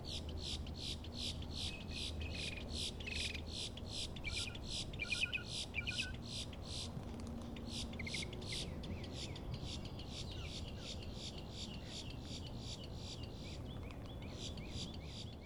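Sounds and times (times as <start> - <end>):
Boat-tailed Grackle calling in Florida: 0.1 - 15.3.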